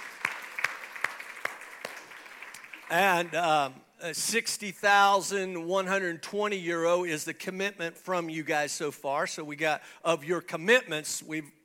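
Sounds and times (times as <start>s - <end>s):
audience applause: 0.0s - 3.4s
speech: 2.9s - 11.6s.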